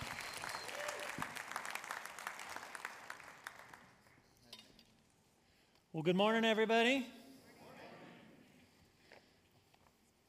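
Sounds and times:
audience applause welcoming a pastor at a morning church service: 0.0 - 4.1
speech: 6.0 - 7.2.

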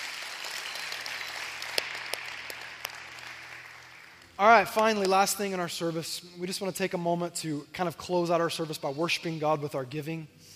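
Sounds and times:
church congregation applauding: 0.0 - 5.1
speech: 4.4 - 10.4.

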